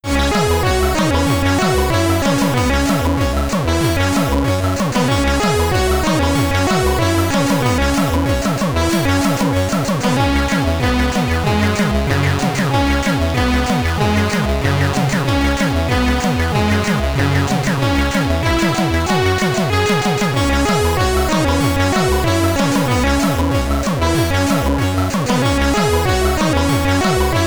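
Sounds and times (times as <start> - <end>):
SID stereo chiptune jingle: 0.1 - 27.4.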